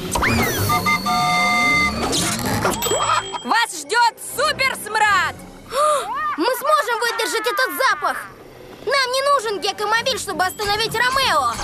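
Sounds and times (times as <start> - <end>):
cartoon villain's stink machine whirring: 0.0 - 3.5
beeping pulses: 0.0 - 3.7
steady high-pitched tones: 0.1 - 4.0
speech: 3.5 - 11.6.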